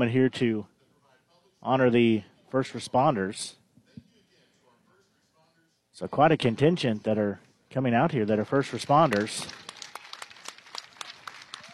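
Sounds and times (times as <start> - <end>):
speech: 0.0 - 0.7, 1.6 - 3.6, 6.0 - 9.6
ballpark crowd applause: 8.4 - 11.7.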